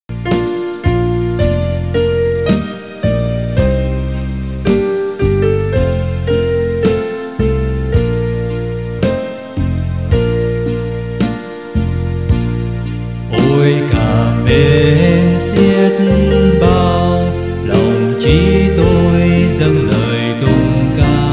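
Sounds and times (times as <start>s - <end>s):
bass: 0.0s - 21.3s.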